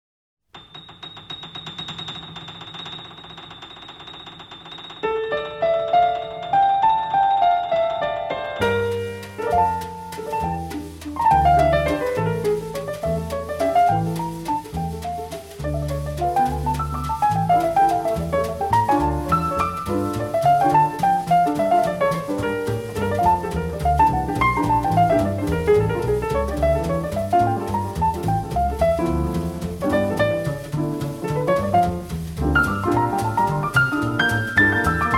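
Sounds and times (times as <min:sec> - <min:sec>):
jazz piano: 0:00.5 - 0:35.1.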